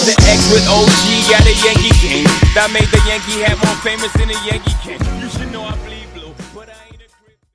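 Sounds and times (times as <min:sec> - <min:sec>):
dirty funk transition at 124 bpm: 0:00.2 - 0:05.9.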